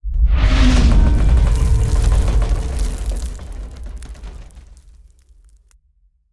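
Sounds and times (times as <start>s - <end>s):
rumble stinger: 0.3s - 5.4s.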